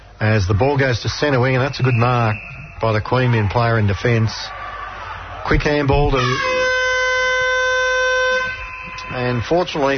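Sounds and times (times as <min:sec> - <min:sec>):
speech: 0:00.2 - 0:04.6, 0:05.4 - 0:06.6, 0:09.1 - 0:09.9
end-of-match siren at football ground: 0:01.6 - 0:03.5, 0:05.5 - 0:09.9.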